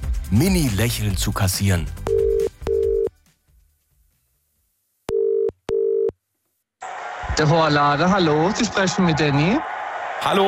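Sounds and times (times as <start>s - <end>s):
speech: 0.3s - 2.0s, 7.4s - 10.4s
telephone dialed for a call to a hairdresser's salon: 2.1s - 3.1s, 5.1s - 6.1s.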